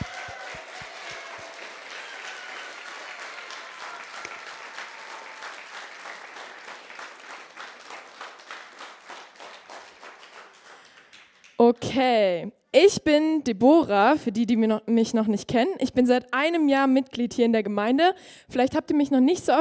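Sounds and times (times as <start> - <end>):
audience applause: 0.0 - 11.6
speech: 11.6 - 19.5.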